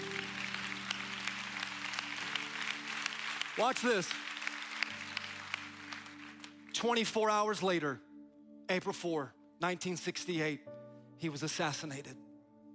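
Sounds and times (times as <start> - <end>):
audience clapping: 0.0 - 7.2
speech: 3.6 - 4.3, 6.8 - 8.1, 8.7 - 12.2.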